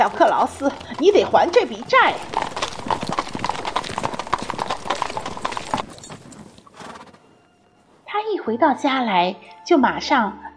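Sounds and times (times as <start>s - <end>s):
speech: 0.0s - 2.6s, 8.5s - 10.4s
cart wheels rattling: 0.0s - 7.2s
horse hooves clip-clopping pulling a cart: 0.0s - 8.1s.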